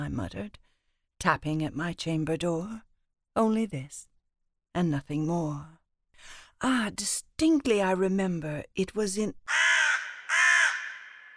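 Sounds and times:
speech: 0.0 - 4.1, 4.7 - 9.6
crow cawing: 9.5 - 11.3.

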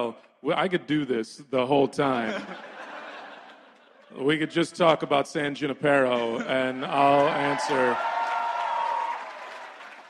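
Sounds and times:
speech: 0.0 - 2.7, 4.1 - 8.2
laughter: 2.1 - 5.1, 5.9 - 8.0
audience applause: 6.7 - 10.0.

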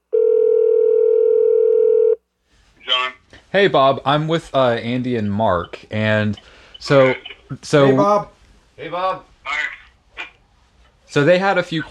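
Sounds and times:
phone dial tone on speakerphone: 0.1 - 2.2
speech: 3.5 - 9.7, 11.1 - 11.8.

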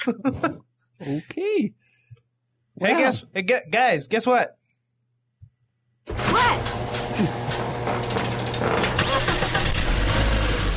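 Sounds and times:
speech: 0.0 - 1.8, 2.8 - 4.6
car engine cranking and purring: 6.1 - 10.7.

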